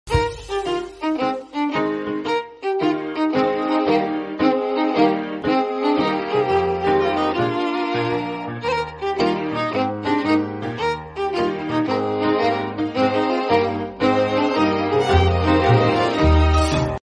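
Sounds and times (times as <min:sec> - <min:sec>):
Japanese background music theme: 0:00.1 - 0:17.0.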